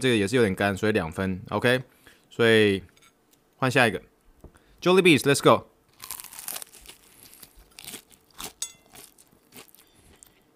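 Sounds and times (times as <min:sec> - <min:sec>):
speech: 0:00.0 - 0:02.9, 0:03.6 - 0:04.1, 0:04.8 - 0:06.1
biting into crunchy fried chicken: 0:05.9 - 0:10.4.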